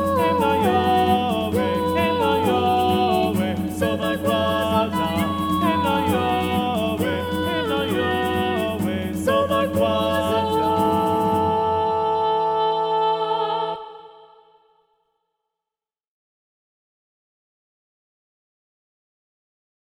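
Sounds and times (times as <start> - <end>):
SATB choir singing: 0.0 - 14.6.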